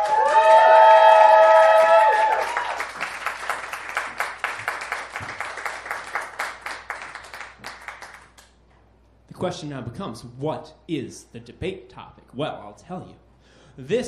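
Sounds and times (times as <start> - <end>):
audience cheering and whooping: 0.0 - 3.2
audience applause greeting a guest called to the stage: 0.0 - 8.6
speech: 9.4 - 14.0.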